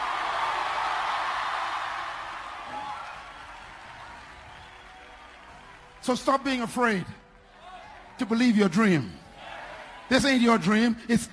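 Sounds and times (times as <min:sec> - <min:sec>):
large gathering clapping: 0:00.0 - 0:08.8
speech: 0:06.0 - 0:07.2, 0:08.2 - 0:09.2, 0:10.1 - 0:11.3.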